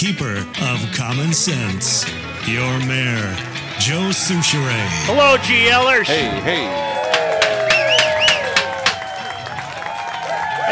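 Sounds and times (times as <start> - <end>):
speech: 0.0 - 7.0
murmur of voices: 0.0 - 9.1
live fair crowd cheering and clapping: 2.0 - 10.7
high whistles: 6.8 - 9.8.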